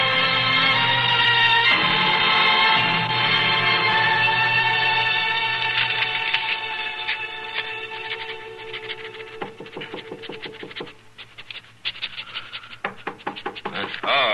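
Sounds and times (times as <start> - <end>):
orchestral music: 0.0 - 9.4
knocking on an office door: 9.4 - 10.8, 12.8 - 14.2.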